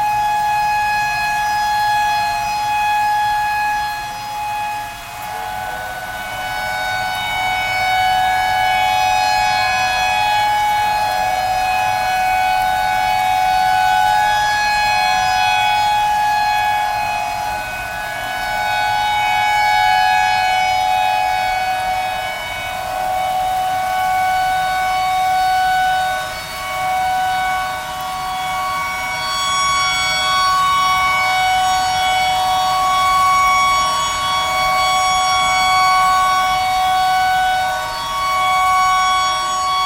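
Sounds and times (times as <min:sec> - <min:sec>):
tornado siren: 0:00.0 - 0:39.8.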